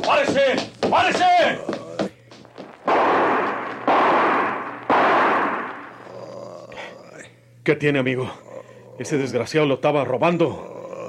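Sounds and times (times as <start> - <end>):
speech: 0.2 - 1.8, 7.7 - 8.4, 9.0 - 10.7
gunshots: 2.8 - 6.0.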